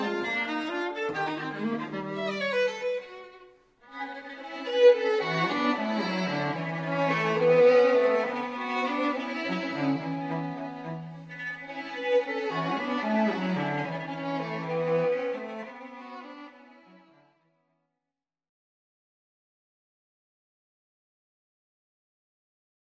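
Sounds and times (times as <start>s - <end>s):
string quartet first movement: 0.0s - 17.4s.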